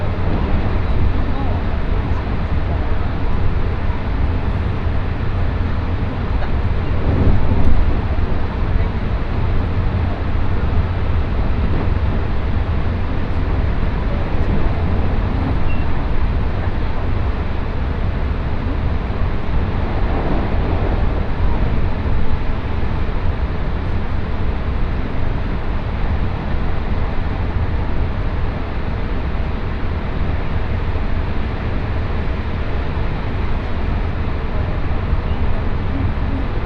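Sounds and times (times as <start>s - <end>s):
quiet voices: 0.0s - 22.8s, 33.2s - 36.6s
Tokaido Line special rapid train wheels and motors rumbling: 0.0s - 36.6s.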